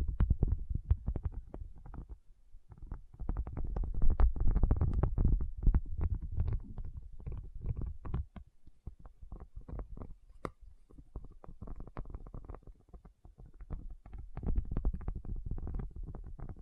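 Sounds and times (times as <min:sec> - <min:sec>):
quick irregular tapping and soft knocks: 0:00.0 - 0:16.6.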